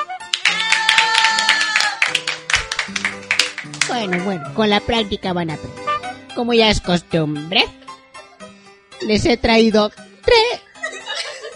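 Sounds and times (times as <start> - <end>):
audience applause: 0.2 - 4.3
speech: 3.9 - 5.8, 6.4 - 7.8, 9.0 - 10.4
laughter: 10.7 - 11.5.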